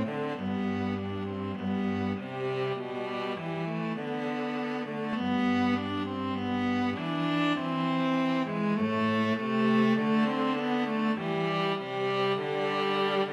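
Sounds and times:
string trio karaoke backing track: 0.0 - 13.3.

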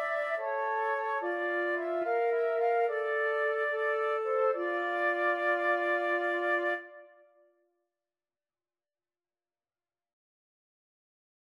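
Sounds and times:
flute trio playing: 0.0 - 7.1.

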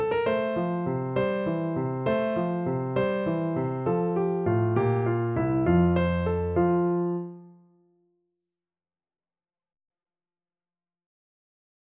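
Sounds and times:
piano gigue in G major: 0.0 - 7.6.

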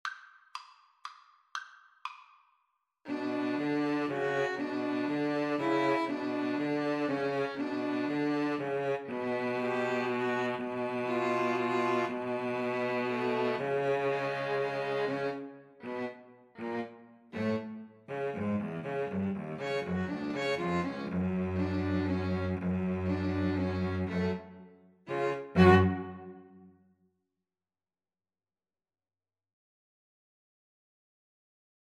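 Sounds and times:
cello: 3.1 - 26.6
two violins: 3.1 - 26.6.

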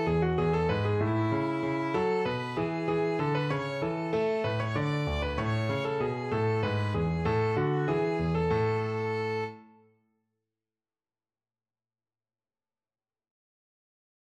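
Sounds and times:
piano: 0.0 - 9.8
violin: 0.0 - 9.8.

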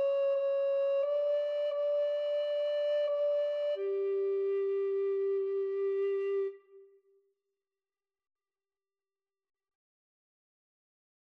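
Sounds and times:
alto recorder duet: 0.0 - 6.8.

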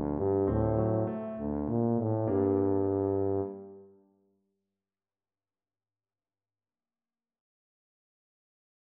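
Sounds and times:
tuba playing a classical piano piece: 0.0 - 3.8.

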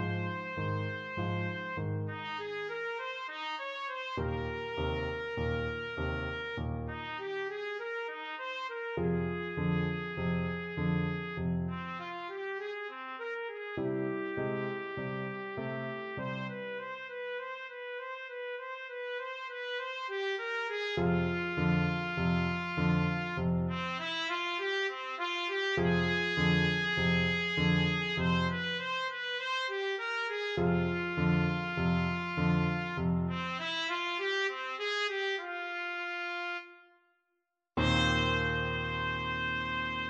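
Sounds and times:
boogie trumpet: 0.0 - 37.0, 37.8 - 40.0.

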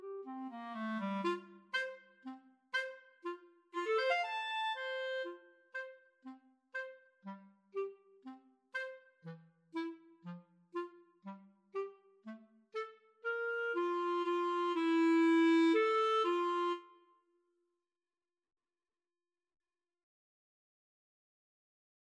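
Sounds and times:
clarinet duet: 0.0 - 17.2.

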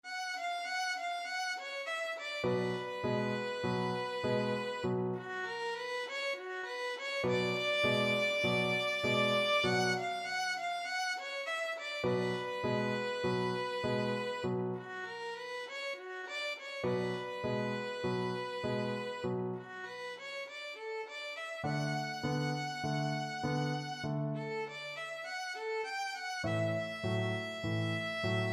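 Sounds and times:
boogie violin: 0.1 - 28.5.

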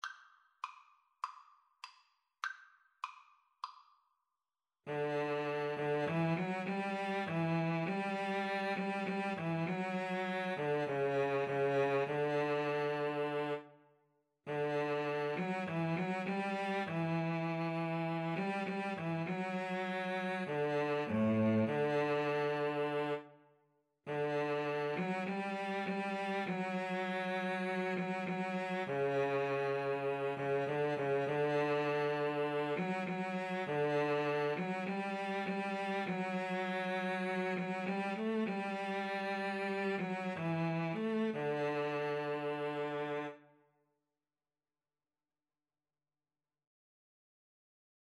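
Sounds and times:
cello: 4.9 - 13.8, 14.5 - 23.4, 24.1 - 43.5.

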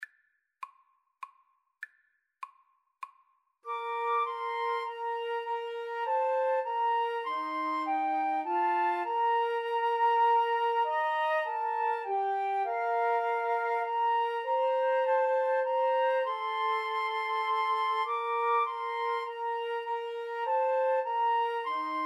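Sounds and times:
flute trio playing a hymn: 3.7 - 22.0.

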